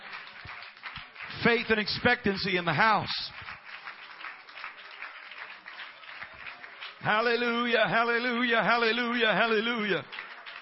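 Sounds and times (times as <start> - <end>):
audience clapping hands: 0.0 - 10.5
speech: 1.4 - 3.4, 7.0 - 10.2.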